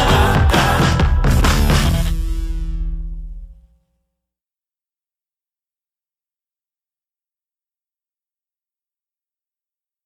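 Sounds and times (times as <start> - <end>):
goal song: 0.0 - 3.4.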